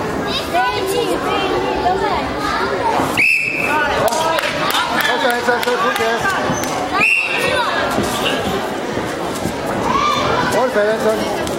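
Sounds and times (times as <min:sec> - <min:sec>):
children chattering: 0:00.0 - 0:11.5
crowd noise: 0:00.0 - 0:11.5
sharp high-pitched whistle blown to signal dog: 0:03.2 - 0:03.8, 0:07.0 - 0:07.4
speech: 0:10.8 - 0:11.4.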